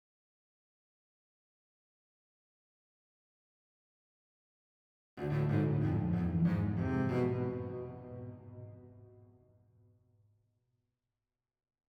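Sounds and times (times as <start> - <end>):
cello riff loop with end tail: 5.2 - 8.8.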